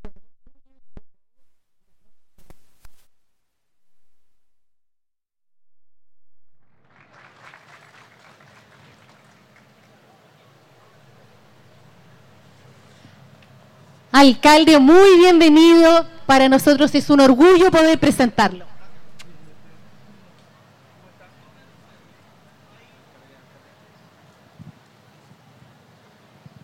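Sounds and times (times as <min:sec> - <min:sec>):
audience applause: 0:06.8 - 0:11.4
speech: 0:14.2 - 0:18.7.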